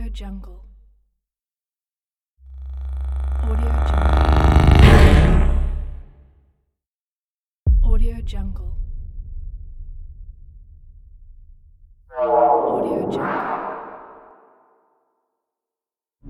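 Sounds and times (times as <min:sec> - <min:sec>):
transition effects: 0:02.6 - 0:06.0, 0:12.1 - 0:14.6.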